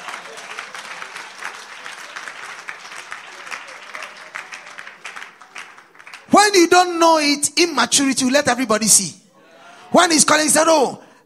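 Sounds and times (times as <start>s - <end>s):
church audience applause: 0.0s - 6.4s
speech: 6.3s - 9.2s, 9.9s - 11.0s.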